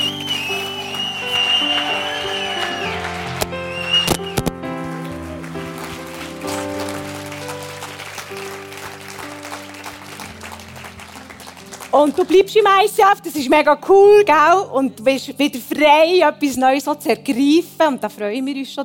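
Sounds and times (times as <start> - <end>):
audience applause: 0.0 - 12.4
speech: 12.0 - 18.8.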